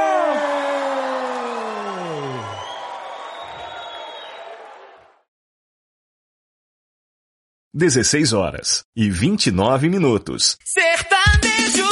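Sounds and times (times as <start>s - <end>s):
crowd shouting and cheering: 0.0s - 5.3s
speech: 7.8s - 11.8s.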